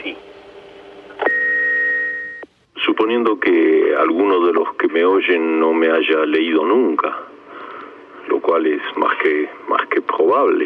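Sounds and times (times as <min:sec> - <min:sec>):
answering machine beep: 0:01.1 - 0:02.5
speech: 0:03.0 - 0:07.4, 0:08.5 - 0:10.6.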